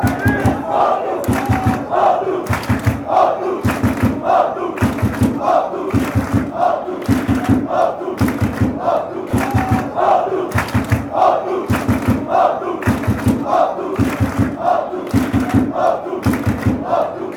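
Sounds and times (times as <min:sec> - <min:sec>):
fans chanting: 0:00.0 - 0:17.3.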